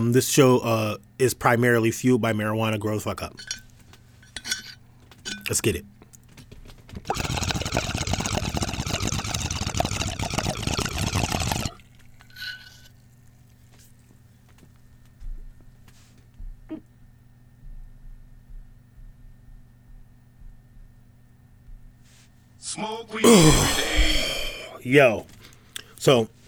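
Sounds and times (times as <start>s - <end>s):
speech: 0.0s - 3.6s, 5.5s - 5.9s, 6.9s - 7.4s, 24.9s - 25.4s, 26.0s - 26.4s
bong water bubbling: 7.1s - 12.1s
person exhaling: 23.2s - 24.8s.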